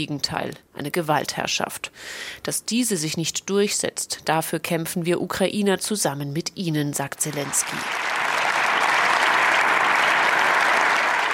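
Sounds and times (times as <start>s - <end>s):
speech: 0.0s - 8.2s
long applause and standing ovation: 7.3s - 11.3s.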